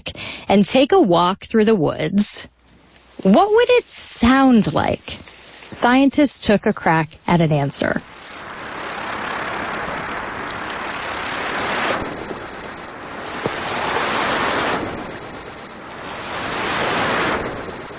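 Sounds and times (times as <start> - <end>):
speech: 0.0 - 2.5, 3.2 - 8.2
reconstructed chirps and cheeps of ancient Jurassic insects: 3.9 - 17.9.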